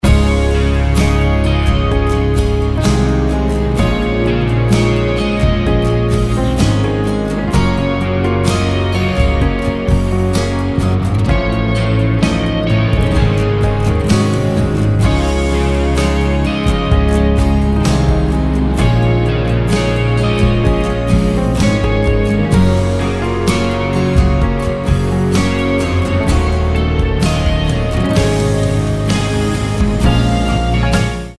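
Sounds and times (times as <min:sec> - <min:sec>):
instrumental music: 0:00.0 - 0:31.3.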